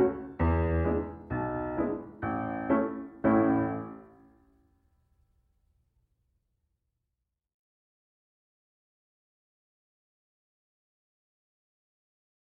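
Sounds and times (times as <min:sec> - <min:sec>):
piano: 0:00.0 - 0:04.6.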